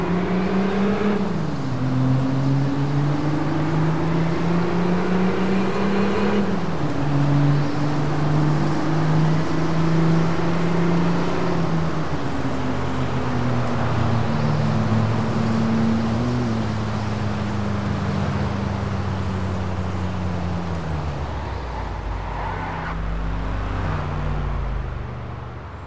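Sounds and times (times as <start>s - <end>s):
Chrysler Crossfire SRT-6 roadster engine: 0.0s - 25.8s.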